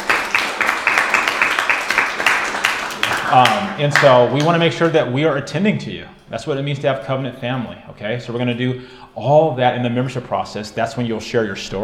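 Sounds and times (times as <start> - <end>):
audience applause: 0.0 - 4.2
speech: 3.3 - 11.8.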